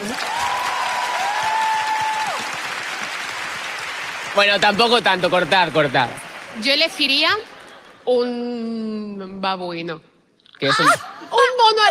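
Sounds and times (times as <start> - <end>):
applause: 0.0 - 8.0
speech: 4.4 - 11.9.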